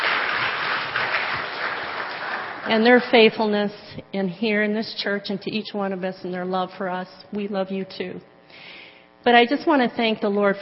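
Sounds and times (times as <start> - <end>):
audience applause: 0.0 - 3.0
speech: 2.6 - 10.6.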